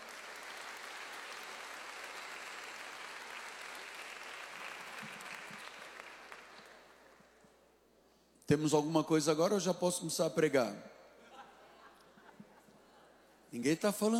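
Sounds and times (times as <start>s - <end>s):
audience applause: 0.0s - 7.2s
speech: 8.5s - 10.9s, 13.6s - 14.1s.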